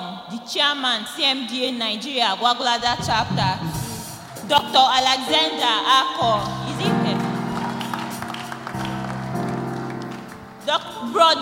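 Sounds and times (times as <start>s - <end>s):
speech: 0.5s - 3.8s, 4.5s - 7.2s, 10.7s - 11.4s
audience clapping: 6.4s - 10.7s.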